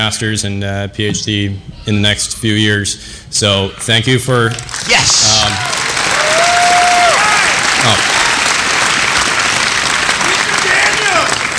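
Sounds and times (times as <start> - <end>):
speech: 0.0 - 5.8, 7.8 - 8.1
audience applause: 4.6 - 11.5.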